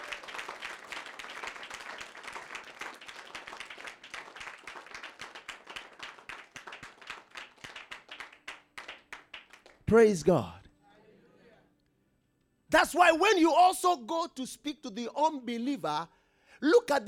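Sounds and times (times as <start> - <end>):
audience clapping: 0.0 - 9.9
speech: 9.9 - 10.6, 12.8 - 17.0.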